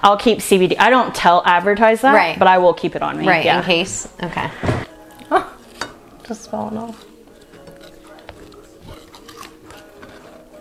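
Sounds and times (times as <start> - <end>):
speech: 0.0 - 4.8, 6.3 - 7.1
crunchy food being chewed: 4.9 - 10.5.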